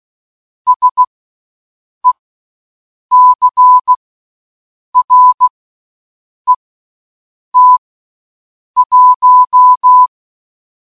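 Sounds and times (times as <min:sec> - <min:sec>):
morse code button: 0:00.7 - 0:01.0, 0:03.1 - 0:04.0, 0:05.0 - 0:05.5, 0:07.6 - 0:07.8, 0:08.8 - 0:10.1.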